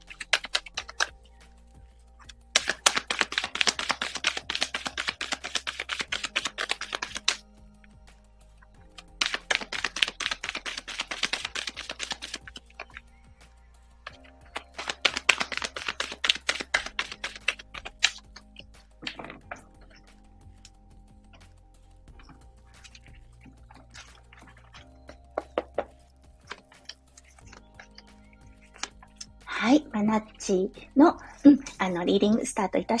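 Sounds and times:
cards shuffled for a card reading: 0.0s - 1.2s, 2.2s - 7.4s, 8.8s - 13.1s, 14.1s - 21.6s, 22.2s - 29.3s
speech: 30.1s - 32.9s.

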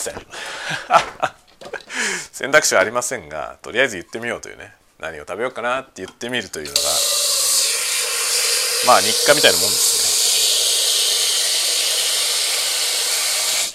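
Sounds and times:
speech: 0.0s - 1.4s, 2.1s - 7.0s, 8.8s - 9.8s
laughter: 0.6s - 1.8s
running water in kitchen: 6.7s - 13.7s.

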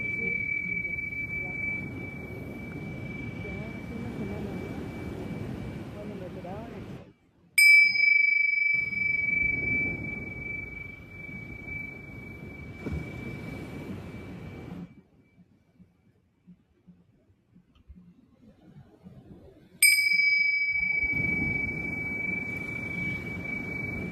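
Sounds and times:
singing bowl struck and ringing: 0.0s - 6.7s, 7.6s - 15.4s, 19.8s - 24.1s
low rumbling murmur: 0.0s - 15.5s, 17.6s - 24.1s.

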